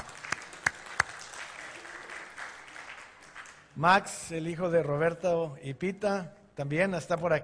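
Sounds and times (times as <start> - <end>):
small group applauding: 0.0 - 3.8
speech: 3.8 - 7.4.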